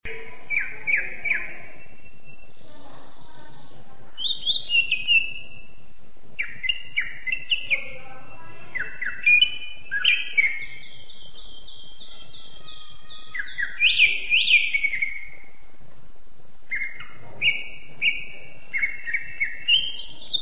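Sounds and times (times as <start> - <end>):
champion Greater green leafbird singing: 0.1 - 15.7, 16.7 - 20.4.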